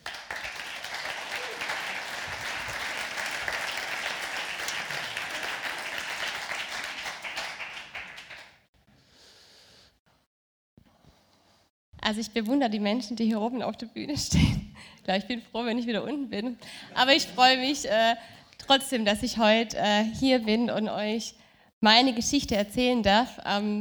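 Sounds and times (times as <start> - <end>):
audience applause: 0.0 - 8.6
laughter: 1.1 - 3.8
speech: 12.1 - 23.7.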